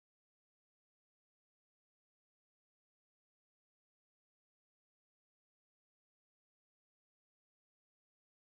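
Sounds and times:
vocals: 0.0 - 8.5.

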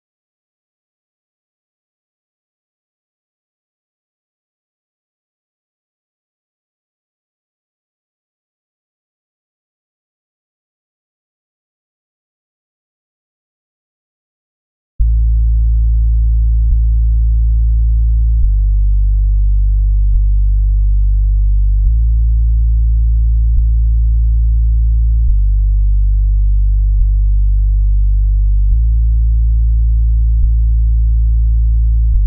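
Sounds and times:
bass: 15.0 - 32.2.

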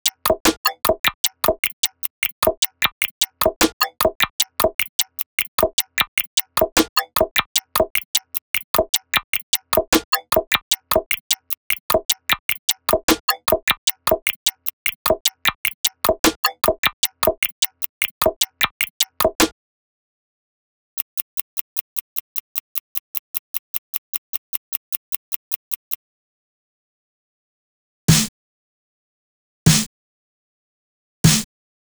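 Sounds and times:
percussion: 0.0 - 19.5, 21.0 - 26.0, 28.1 - 28.3, 29.7 - 29.9, 31.3 - 31.5.

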